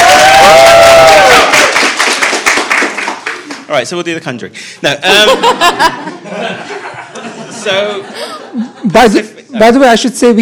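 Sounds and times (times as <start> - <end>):
crowd clapping and cheering: 0.0 - 3.7
speech: 3.8 - 6.8, 7.6 - 10.4
laughter: 4.8 - 9.6.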